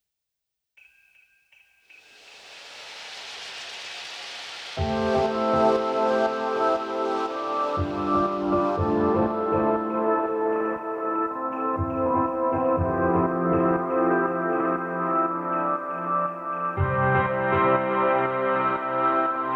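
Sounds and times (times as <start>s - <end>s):
Christmas house beats: 4.8s - 15.9s, 16.7s - 19.5s.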